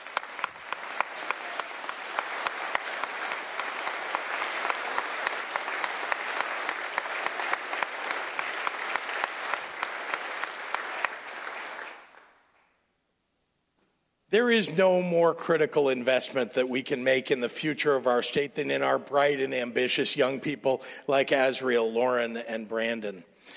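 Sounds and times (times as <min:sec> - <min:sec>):
applause from a sizable crowd: 0:00.0 - 0:12.5
speech: 0:14.3 - 0:23.5.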